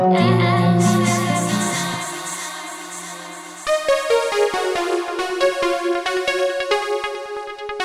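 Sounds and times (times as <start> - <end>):
dub music: 0.1 - 7.8.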